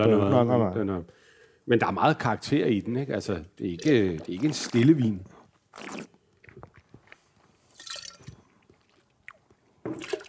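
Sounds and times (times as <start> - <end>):
speech: 0.0 - 6.1
person biting into and chewing a small lamb chop: 5.4 - 7.6, 8.4 - 9.8.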